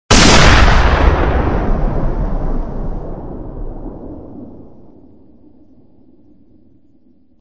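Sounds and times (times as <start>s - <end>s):
gunshot: 0.1s - 5.5s.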